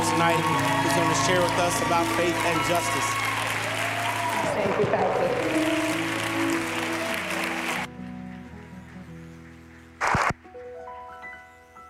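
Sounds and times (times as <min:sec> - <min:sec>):
church audience clapping to welcome a presenter: 0:00.0 - 0:10.5
speech: 0:00.2 - 0:03.3, 0:04.4 - 0:05.8
short burst of noise: 0:10.0 - 0:10.4.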